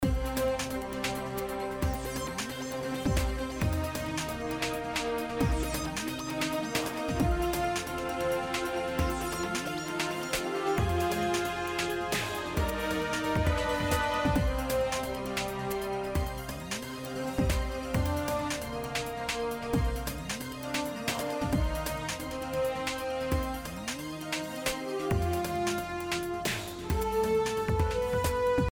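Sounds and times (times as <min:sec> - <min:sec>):
victory theme music: 0:00.0 - 0:28.7.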